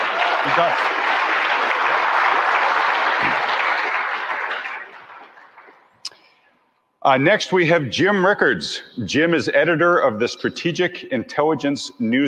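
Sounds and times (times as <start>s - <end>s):
audience applause: 0.0s - 5.9s
speech: 0.4s - 1.0s, 7.0s - 12.2s.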